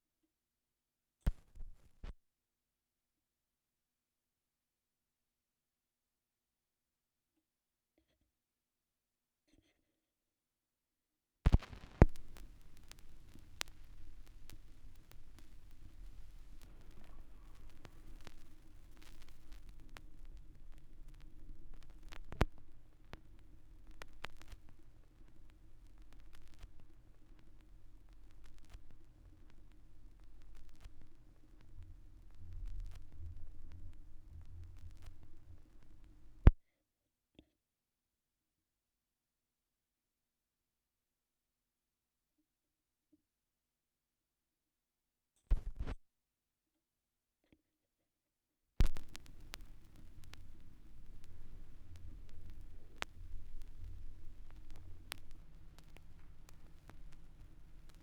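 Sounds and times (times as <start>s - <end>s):
vinyl record noise: 1.3s - 2.2s, 11.5s - 36.6s, 45.5s - 46.0s, 48.8s - 58.0s.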